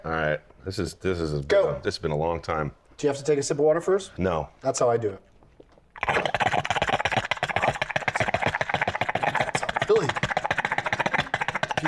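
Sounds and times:
speech: 0:00.0 - 0:05.3
voice imitating a bong hit: 0:06.0 - 0:11.8.

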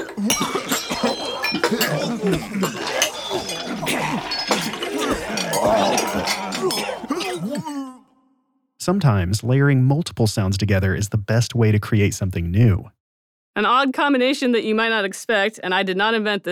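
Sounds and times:
crowd of people gagging, layered effect: 0:00.0 - 0:07.8
speech: 0:00.2 - 0:00.6, 0:08.8 - 0:13.0, 0:13.6 - 0:16.5.

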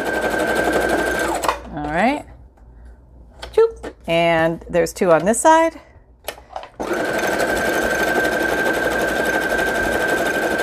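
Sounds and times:
sewing machine sewing zigzag stitches on fabric bookmarks: 0:00.0 - 0:01.6, 0:06.8 - 0:10.6
speech: 0:04.1 - 0:05.9.

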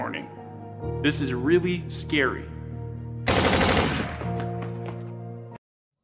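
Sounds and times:
speech: 0:01.0 - 0:02.6
rapid gunfire from a 9mm semi-automatic assault pistol: 0:03.3 - 0:04.3.

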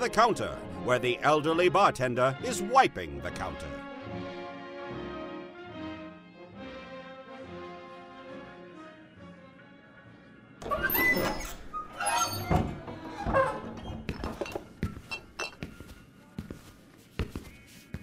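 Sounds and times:
speech: 0:00.0 - 0:03.8
steady tuneful music: 0:00.0 - 0:18.0
saloon double doors swinging open: 0:10.6 - 0:15.7.

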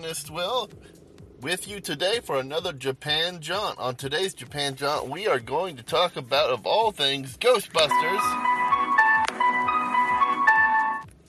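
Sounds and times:
speech: 0:00.0 - 0:08.5
phone text message notification sounds: 0:07.9 - 0:11.1.

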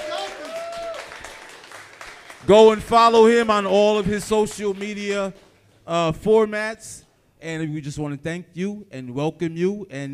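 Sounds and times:
round of applause: 0:00.0 - 0:05.8
speech: 0:02.4 - 0:10.1.

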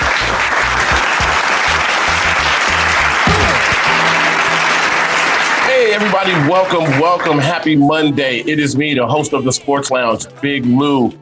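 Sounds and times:
audience applause welcoming the host of a sports talk show: 0:00.0 - 0:07.6
speech: 0:05.9 - 0:11.2.

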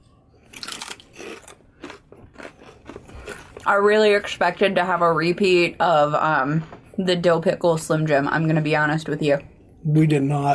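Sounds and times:
chewing kettle-style potato chips crunching: 0:00.4 - 0:03.7
speech: 0:03.7 - 0:10.5.

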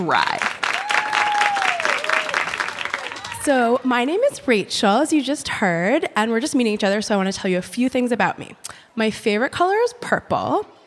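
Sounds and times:
speech: 0:00.0 - 0:00.6, 0:03.4 - 0:10.8
audience applause: 0:00.2 - 0:03.5.

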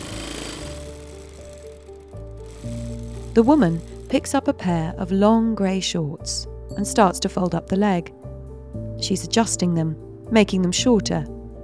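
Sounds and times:
sewing machine whirring: 0:00.0 - 0:04.8
speech: 0:03.4 - 0:08.2, 0:09.0 - 0:11.4.

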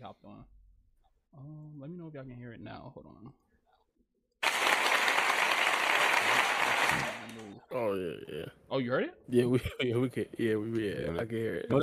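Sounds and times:
speech: 0:02.1 - 0:03.5, 0:07.5 - 0:11.8
applause sound effect, standing ovation: 0:04.4 - 0:07.5.

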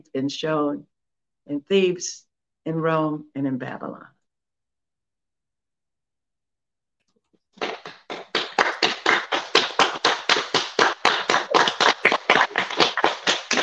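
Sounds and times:
speech: 0:00.0 - 0:00.9, 0:01.5 - 0:04.2
live audience clapping: 0:07.6 - 0:13.6.

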